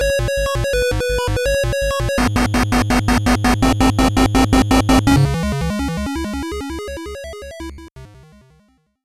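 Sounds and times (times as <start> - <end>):
8-bit chiptune sounds: 0.1 - 8.6.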